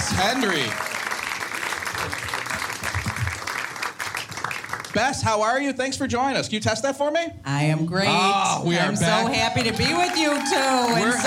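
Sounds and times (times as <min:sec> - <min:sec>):
audience applause welcoming a school principal onto the stage: 0:00.0 - 0:05.2, 0:09.2 - 0:11.2
speech: 0:00.2 - 0:00.9, 0:05.0 - 0:11.2.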